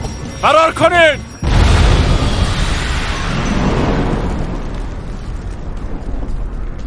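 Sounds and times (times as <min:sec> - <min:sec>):
speech: 0:00.4 - 0:01.3
explosion blowing up a facility: 0:01.4 - 0:06.8.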